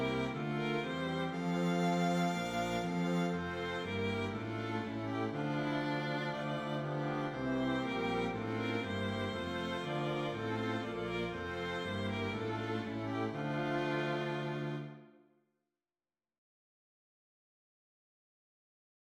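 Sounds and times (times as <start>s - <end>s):
strings: 0.0s - 15.1s.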